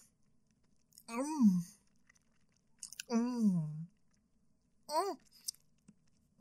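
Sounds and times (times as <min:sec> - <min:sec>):
mouth smacks and slurps from eating ice cream: 0:00.5 - 0:03.1, 0:05.2 - 0:06.2.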